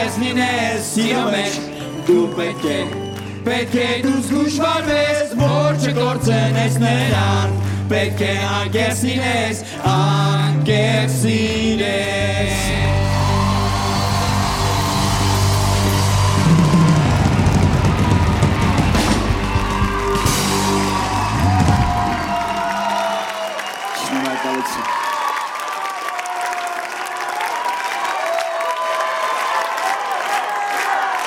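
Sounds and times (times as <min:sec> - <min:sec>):
audience applauding and cheering a band: 0:00.0 - 0:08.8, 0:12.3 - 0:31.2
low musical tail: 0:00.0 - 0:22.9
speech: 0:00.1 - 0:13.0.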